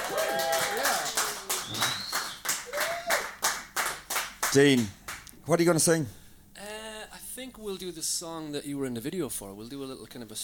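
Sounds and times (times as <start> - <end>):
audience applause: 0.0 - 4.8
speech: 4.5 - 6.2, 7.4 - 10.4.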